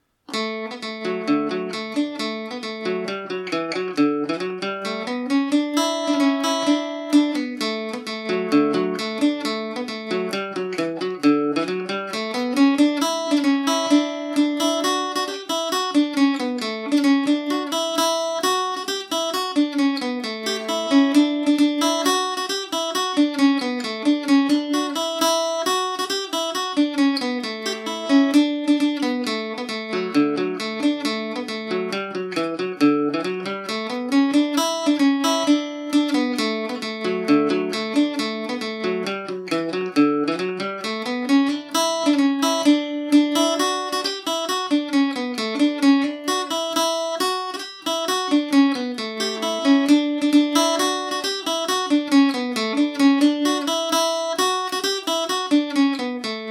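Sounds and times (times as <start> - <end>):
Irish mandolin playing in D major: 0.0 - 56.4.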